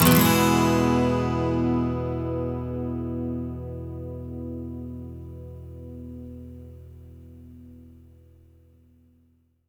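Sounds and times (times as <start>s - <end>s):
12 string electric and acoustic guitar loops in E major: 0.0s - 6.8s.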